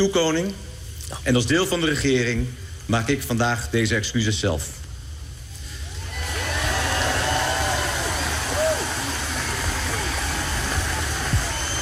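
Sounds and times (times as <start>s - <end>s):
speech: 0.0s - 4.8s
enormous applause from audience: 5.9s - 11.8s.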